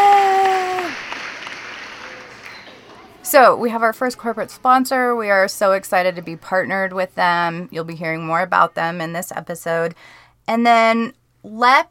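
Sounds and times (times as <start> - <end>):
crowd cheering and applause: 0.0 - 3.3
speech: 3.3 - 11.8.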